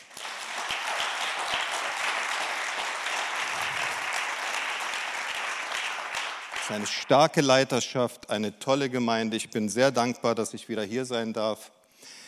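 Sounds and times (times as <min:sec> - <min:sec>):
audience applause: 0:00.0 - 0:07.1
speech: 0:06.7 - 0:11.8.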